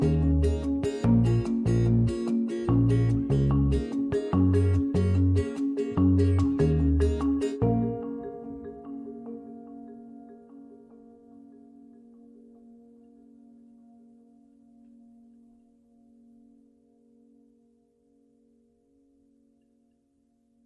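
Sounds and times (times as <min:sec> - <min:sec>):
reduced acoustic music: 0:00.0 - 0:13.4.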